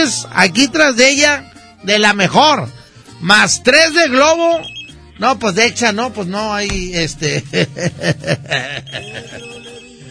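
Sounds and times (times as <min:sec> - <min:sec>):
speech: 0:00.0 - 0:09.6
telephone ringing: 0:04.6 - 0:05.2, 0:08.8 - 0:10.0
laughter: 0:07.2 - 0:09.9.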